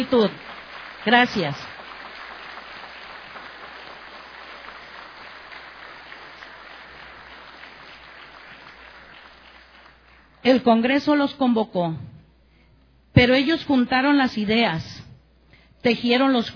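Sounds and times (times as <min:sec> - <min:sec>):
speech: 0:00.0 - 0:01.7, 0:10.4 - 0:12.1, 0:13.2 - 0:15.0, 0:15.8 - 0:16.5
audience applause: 0:00.0 - 0:10.4.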